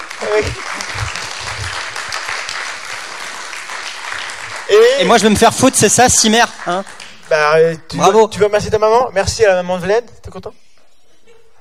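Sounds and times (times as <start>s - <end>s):
audience applause: 0.0s - 7.4s
speech: 0.2s - 1.2s, 4.7s - 10.6s.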